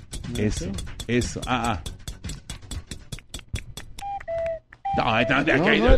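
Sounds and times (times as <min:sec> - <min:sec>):
cuckoo clock ticking: 0:00.0 - 0:05.9
speech: 0:00.3 - 0:01.9, 0:05.0 - 0:05.9
cuckoo clock two-note whistled call: 0:04.0 - 0:05.6.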